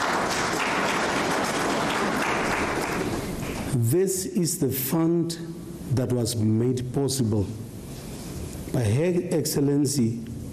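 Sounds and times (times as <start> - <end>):
audience applause: 0.0 - 3.7
speech: 3.8 - 7.6, 8.7 - 10.3.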